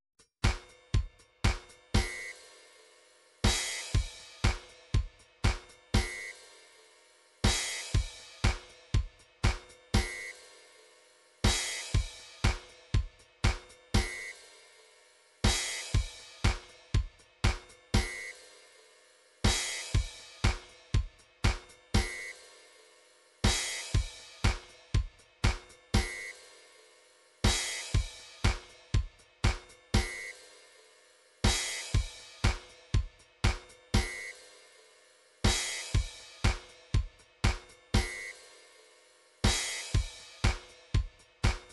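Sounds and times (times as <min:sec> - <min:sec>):
MIDI drum patterns: 0:00.4 - 0:02.4, 0:03.4 - 0:06.3, 0:07.4 - 0:10.3, 0:11.4 - 0:14.3, 0:15.4 - 0:18.3, 0:19.4 - 0:22.3, 0:23.4 - 0:26.3, 0:27.4 - 0:30.3, 0:31.4 - 0:34.3, 0:35.4 - 0:38.5, 0:39.4 - 0:41.7.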